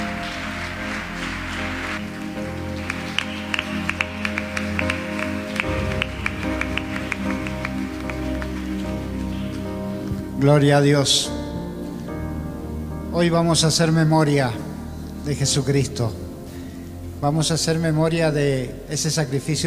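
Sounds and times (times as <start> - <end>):
audience applause: 0.0 - 10.3
speech: 10.4 - 11.4, 13.2 - 16.2, 17.2 - 19.6.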